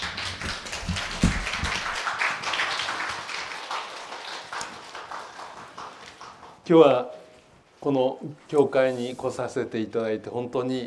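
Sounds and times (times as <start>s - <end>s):
welcoming applause from audience: 0.0s - 6.4s
speech: 6.7s - 7.1s, 7.8s - 10.8s.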